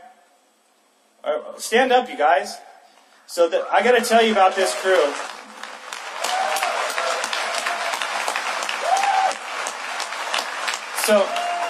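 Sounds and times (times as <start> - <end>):
speech: 1.3 - 2.7, 3.3 - 5.4, 11.1 - 11.4
audience applause: 4.1 - 11.6.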